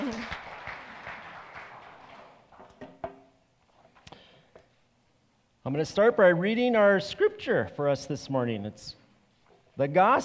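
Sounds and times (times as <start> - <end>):
audience clapping: 0.0 - 2.6
speech: 5.6 - 9.0, 9.8 - 10.2.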